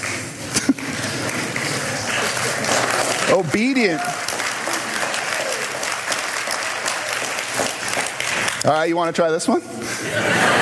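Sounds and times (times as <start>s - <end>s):
crowd clapping: 0.0s - 9.2s
speech: 3.3s - 4.2s, 8.6s - 10.5s
laughter: 9.8s - 10.5s.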